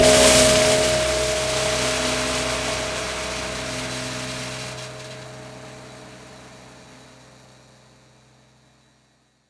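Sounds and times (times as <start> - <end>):
prepared drums: 0.0 - 4.9.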